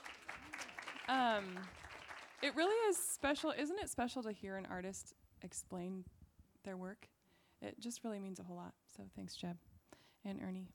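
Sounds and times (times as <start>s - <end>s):
audience applause: 0.0s - 2.8s
speech: 1.1s - 1.8s, 2.4s - 10.7s.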